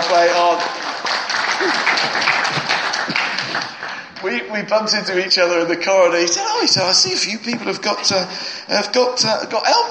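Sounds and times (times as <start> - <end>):
audience applause: 0.0 - 4.5
speech: 0.1 - 0.9, 1.6 - 2.6, 4.2 - 9.8.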